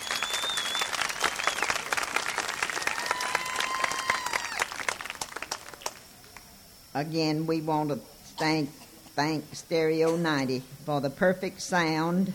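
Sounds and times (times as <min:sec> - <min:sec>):
high whistles: 0:00.0 - 0:05.2
audience applause: 0:00.0 - 0:06.1
speech: 0:07.0 - 0:12.3.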